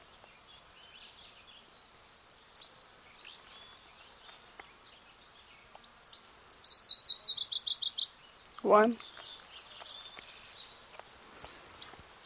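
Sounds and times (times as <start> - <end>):
Virginia's warbler singing: 0.0 - 12.2
speech: 8.6 - 9.1.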